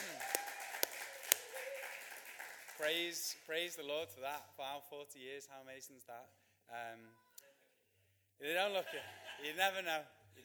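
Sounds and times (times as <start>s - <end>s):
round of applause: 0.0s - 3.5s
speech: 2.8s - 7.2s, 8.4s - 10.4s
laughter: 8.7s - 9.6s.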